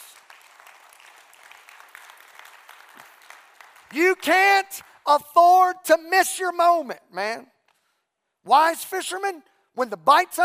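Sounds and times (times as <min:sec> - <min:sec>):
audience clapping hands: 0:00.0 - 0:05.2
speech: 0:03.9 - 0:07.5, 0:08.4 - 0:10.4.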